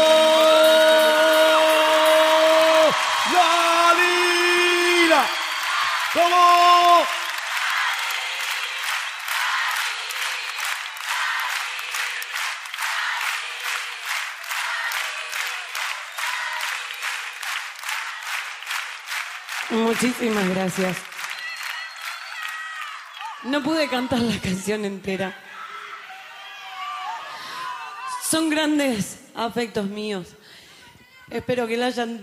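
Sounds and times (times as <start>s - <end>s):
live concert audience applause in Buenos Aires: 0.0s - 24.8s
speech: 20.0s - 21.1s, 23.4s - 25.5s, 28.3s - 30.4s, 31.3s - 32.2s.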